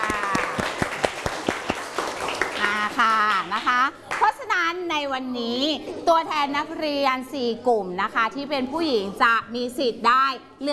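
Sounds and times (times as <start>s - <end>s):
classroom applause: 0.0s - 4.3s
speech: 4.7s - 10.7s.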